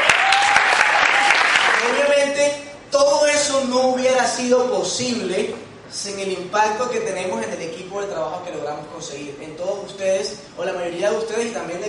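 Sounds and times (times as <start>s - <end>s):
audience applause: 0.0s - 2.0s
speech: 3.0s - 11.8s.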